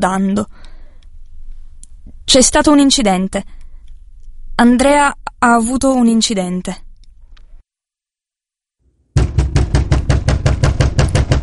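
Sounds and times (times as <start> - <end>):
speech: 0.0 - 0.7, 2.3 - 3.6, 4.6 - 6.8
knocking on a door: 9.2 - 11.4.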